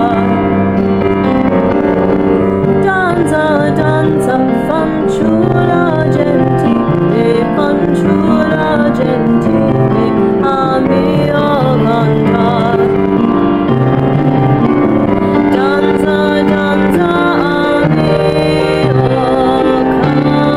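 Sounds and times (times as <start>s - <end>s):
dance music: 0.0s - 20.5s.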